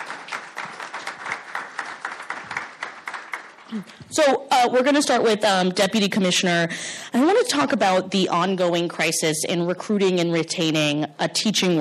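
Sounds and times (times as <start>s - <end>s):
audience applause: 0.0s - 3.8s
speech: 3.7s - 11.7s.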